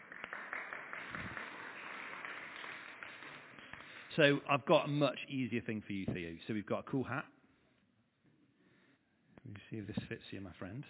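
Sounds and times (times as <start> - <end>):
crowd applauding: 0.0 - 4.2
speech: 4.2 - 7.4, 9.5 - 10.8.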